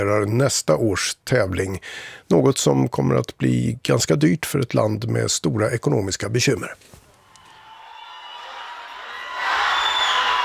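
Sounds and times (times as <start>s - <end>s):
speech: 0.0s - 7.0s
fans cheering and applauding in Sofia: 7.4s - 10.4s.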